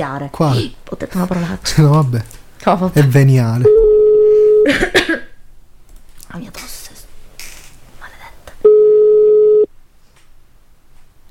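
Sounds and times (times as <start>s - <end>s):
speech: 0.0s - 3.8s, 4.6s - 5.0s, 6.3s - 6.8s
faint noise: 0.0s - 11.2s
telephone ringing tone: 3.7s - 4.7s, 8.7s - 9.7s.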